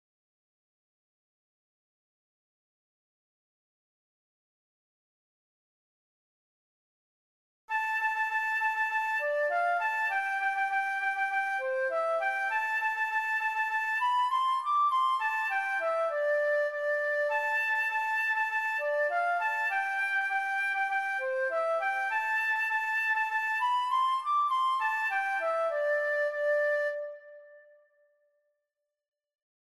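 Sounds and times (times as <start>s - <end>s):
flute playing a sea shanty tune: 7.7s - 28.1s.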